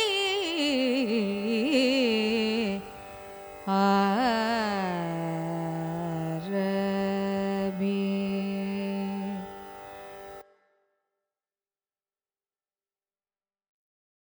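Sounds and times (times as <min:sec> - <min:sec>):
Carnatic raga music: 0:00.0 - 0:10.6.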